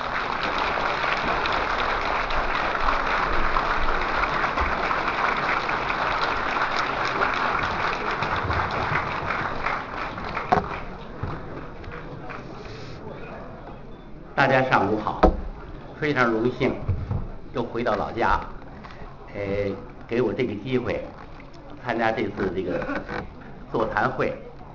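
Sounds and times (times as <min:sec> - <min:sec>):
warm audience applause: 0:00.0 - 0:13.2
speech: 0:14.4 - 0:15.3, 0:16.0 - 0:16.9, 0:17.5 - 0:18.6, 0:19.4 - 0:21.2, 0:21.8 - 0:24.4.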